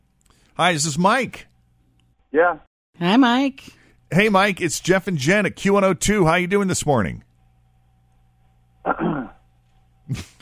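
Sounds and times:
faint steady electrical hum: 0.0s - 10.4s
speech: 0.6s - 1.5s, 2.3s - 7.3s, 10.1s - 10.4s
throat clearing: 8.9s - 9.4s.

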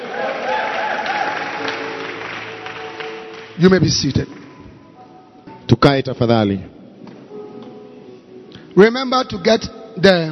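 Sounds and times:
people clapping for the Lord: 0.0s - 4.7s
speech: 3.6s - 4.4s, 5.7s - 6.8s, 8.8s - 10.3s.

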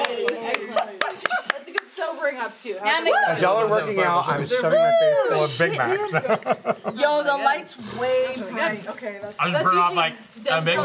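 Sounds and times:
hand clapping: 0.0s - 1.9s
laughter: 0.0s - 1.9s, 4.5s - 7.4s
speech: 2.6s - 10.8s.

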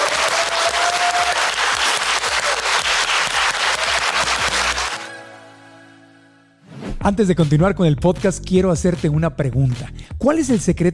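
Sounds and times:
applause: 0.0s - 5.1s
speech: 7.1s - 10.9s.

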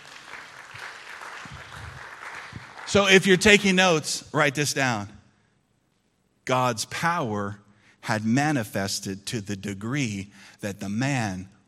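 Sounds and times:
audience applause: 0.0s - 3.6s
speech: 2.9s - 5.2s, 6.5s - 11.6s.

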